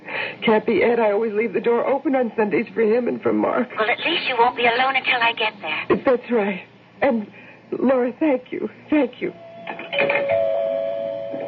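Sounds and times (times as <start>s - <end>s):
speech: 0.4s - 10.4s
doorbell ringing: 9.7s - 11.4s.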